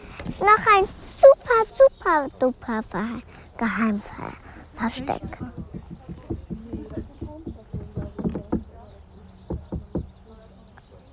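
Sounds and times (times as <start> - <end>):
speech: 0.3 - 5.7
people knocking on the Löwenstein: 4.8 - 8.9, 9.5 - 10.1.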